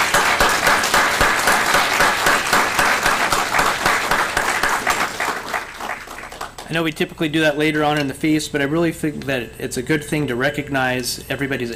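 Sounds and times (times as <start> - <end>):
audience round of applause: 0.0 - 6.7
speech: 6.7 - 11.7.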